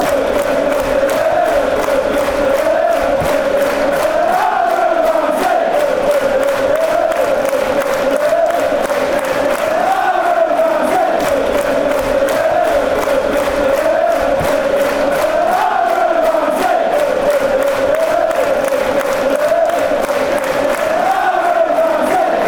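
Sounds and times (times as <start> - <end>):
fans chanting: 0.0 - 22.4.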